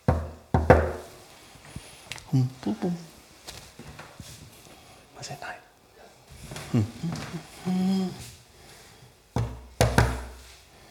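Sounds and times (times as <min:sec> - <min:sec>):
knocking on a door: 0:00.0 - 0:01.1, 0:09.4 - 0:10.3
speech: 0:02.3 - 0:03.1, 0:05.2 - 0:05.6, 0:06.7 - 0:08.2.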